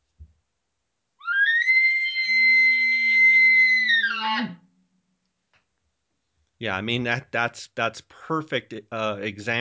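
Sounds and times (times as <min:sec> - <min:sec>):
imitated high-pitched elk bugle call: 0:01.2 - 0:04.6
speech: 0:06.6 - 0:09.6.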